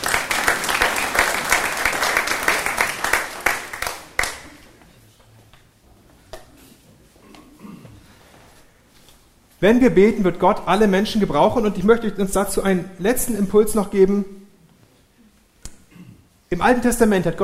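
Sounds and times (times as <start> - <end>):
small applause: 0.0 - 4.7
speech: 9.6 - 14.4, 16.5 - 17.4.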